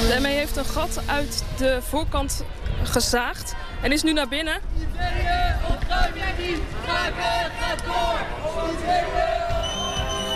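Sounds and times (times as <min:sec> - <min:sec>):
speech: 0:00.2 - 0:09.4
protesters shouting slogans during police eviction: 0:04.7 - 0:10.3.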